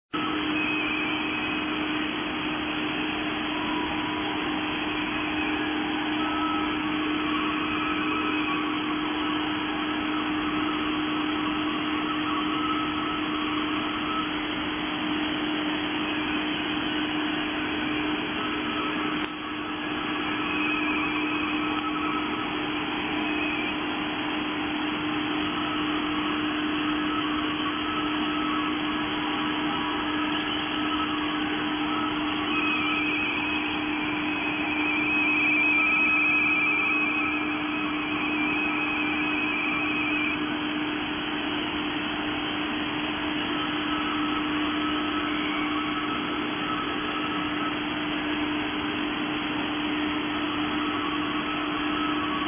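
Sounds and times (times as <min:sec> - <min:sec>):
radioteletype signal: 0:00.1 - 0:52.4.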